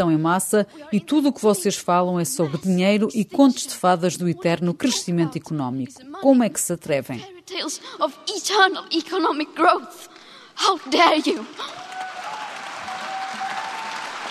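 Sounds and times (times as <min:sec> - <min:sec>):
person speaking emphatically: 0:00.0 - 0:10.0
speech: 0:00.0 - 0:11.8
audience applause after a speech: 0:11.0 - 0:14.2.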